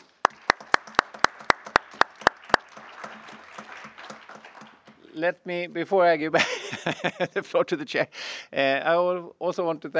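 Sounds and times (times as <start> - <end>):
sharp rhythmic claps: 0.0 - 5.2
speech: 5.2 - 9.9
laughter: 6.4 - 7.6.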